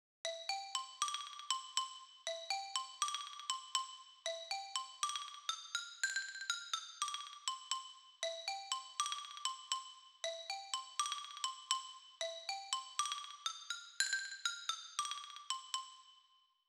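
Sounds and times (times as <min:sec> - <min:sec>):
xylophone: 0:00.2 - 0:16.3.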